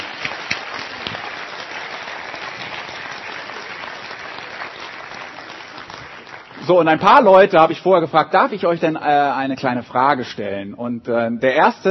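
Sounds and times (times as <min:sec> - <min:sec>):
crowd clapping: 0:00.0 - 0:07.3
speech: 0:06.7 - 0:11.8.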